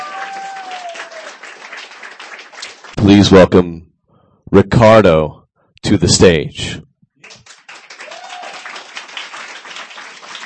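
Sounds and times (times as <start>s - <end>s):
audience applause for a reader at a reading event: 0.0s - 3.0s, 7.2s - 10.4s
speech: 3.0s - 3.9s, 4.5s - 6.9s.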